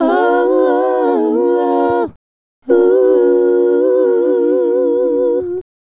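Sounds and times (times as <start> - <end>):
female group hip-hop and RnB vocals: 0.0 - 5.6.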